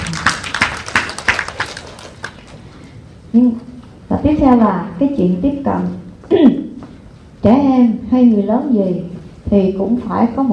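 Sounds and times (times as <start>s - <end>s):
sparse audience applause: 0.0s - 2.6s
speech: 3.3s - 6.7s, 7.4s - 10.5s.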